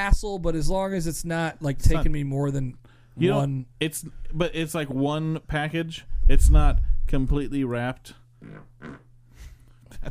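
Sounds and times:
speech: 0.0s - 9.0s
fart: 8.4s - 9.1s.

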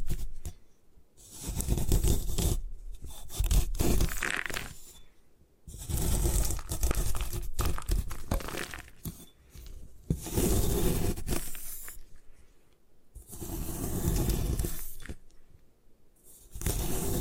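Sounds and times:
gym chalk crumbling and scraping: 0.0s - 5.1s, 5.7s - 12.6s, 13.2s - 15.5s, 16.2s - 17.1s.

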